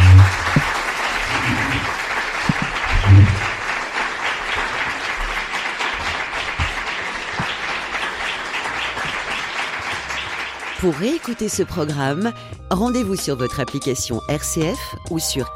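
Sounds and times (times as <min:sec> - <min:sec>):
audience applause: 0:00.0 - 0:11.5
speech: 0:10.8 - 0:15.5.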